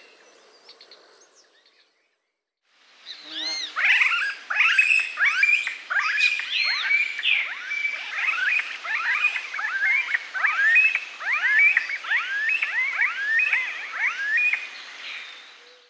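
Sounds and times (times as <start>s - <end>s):
smooth-billed ani calling: 3.1s - 15.8s.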